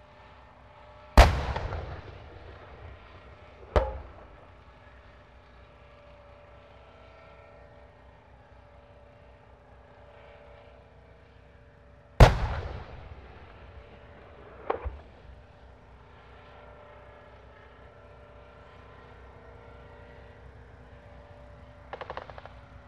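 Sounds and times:
tank gun shots while moving: 0:01.2 - 0:04.7, 0:12.2 - 0:15.3, 0:21.9 - 0:22.7.

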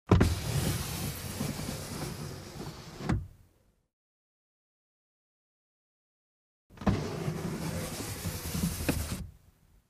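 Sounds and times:
car glass window lowered and raised manually: 0:00.1 - 0:03.3, 0:06.7 - 0:09.3.

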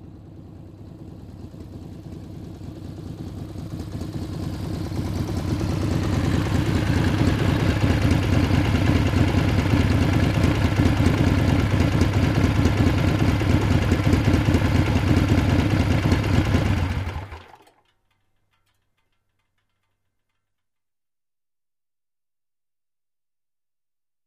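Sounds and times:
motorcycle approaching and turning off: 0:00.0 - 0:17.7.

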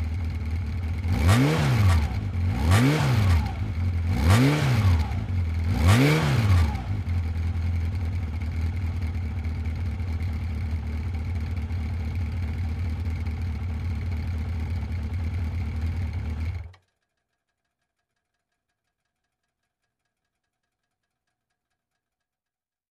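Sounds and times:
motorcycle starting and revving: 0:00.0 - 0:16.8.

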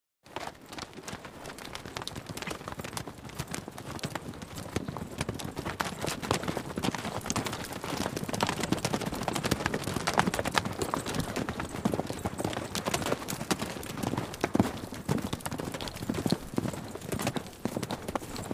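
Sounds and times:
horse hoofbeats clip-clopping: 0:00.3 - 0:18.5.

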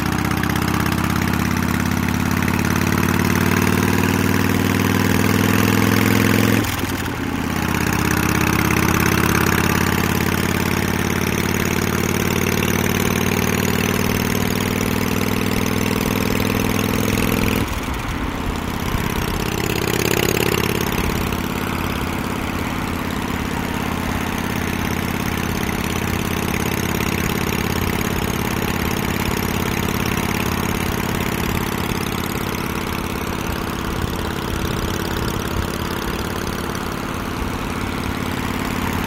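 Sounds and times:
Harley-Davidson motorcycle starting and moving off: 0:00.0 - 0:39.0.

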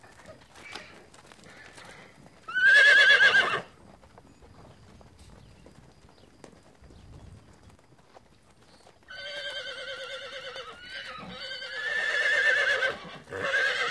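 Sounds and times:
horse neighing: 0:02.5 - 0:03.7, 0:09.1 - 0:13.9.

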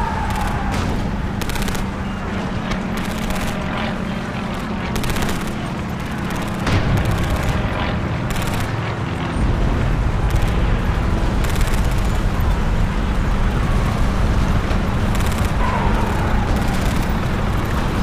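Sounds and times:
shootout gunfire: 0:00.0 - 0:09.1, 0:10.2 - 0:12.5, 0:15.0 - 0:18.0
shell explosions: 0:00.0 - 0:12.9, 0:13.6 - 0:18.0
aircraft: 0:00.0 - 0:18.0.

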